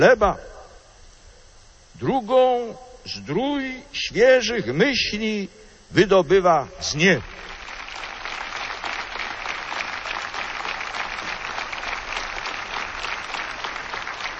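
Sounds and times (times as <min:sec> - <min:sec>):
speech: 0:00.0 - 0:00.5, 0:02.0 - 0:07.5
audience applause: 0:07.2 - 0:14.3.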